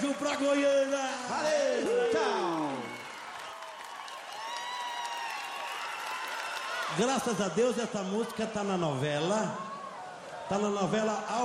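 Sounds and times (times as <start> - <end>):
audience clapping: 0.0 - 8.4
speech: 0.2 - 2.4, 7.0 - 9.7, 10.5 - 11.4.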